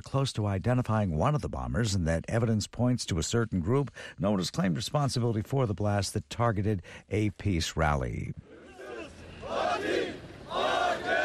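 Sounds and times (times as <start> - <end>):
speech: 0.1 - 8.6
crowd marching and chanting in a street in Ankara: 8.4 - 11.2.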